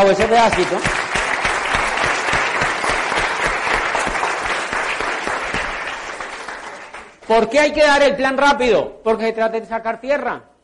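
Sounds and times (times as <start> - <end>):
crowd clapping: 0.0 - 7.5
speech: 0.1 - 1.2, 7.3 - 10.5.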